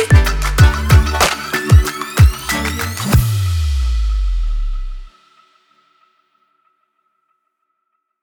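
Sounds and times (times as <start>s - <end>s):
future bass music: 0.0s - 5.1s.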